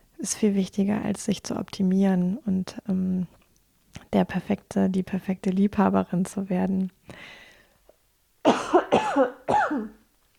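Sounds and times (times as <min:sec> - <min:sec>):
speech: 0:00.2 - 0:03.4, 0:04.1 - 0:07.4, 0:09.2 - 0:10.0
person coughing from a pollen allergy: 0:08.5 - 0:10.0.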